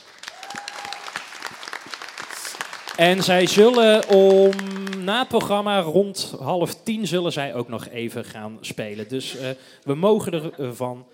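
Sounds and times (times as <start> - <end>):
audience applause for school band: 0.0 - 5.6
speech: 3.0 - 11.1.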